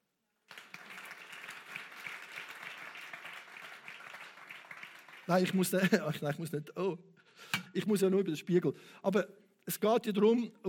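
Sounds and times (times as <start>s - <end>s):
audience applauding: 0.5s - 6.0s
speech: 5.3s - 10.6s
laughter: 5.6s - 6.5s.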